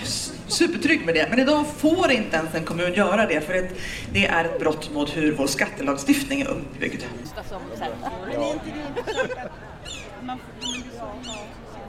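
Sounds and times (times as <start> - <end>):
laughter: 0.0 - 1.1, 7.3 - 9.8
speech: 0.5 - 11.6
seagulls calling: 8.4 - 11.8.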